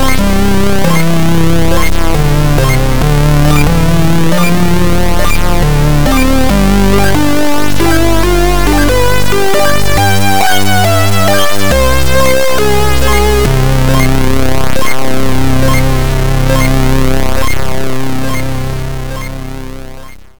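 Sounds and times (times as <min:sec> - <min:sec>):
PWM square synth: 0:00.0 - 0:20.3.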